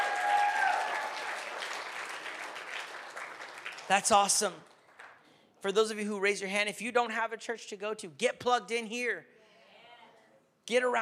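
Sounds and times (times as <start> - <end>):
audience applause: 0.0 - 5.2
speech: 3.9 - 4.7, 5.6 - 9.4, 10.7 - 11.0.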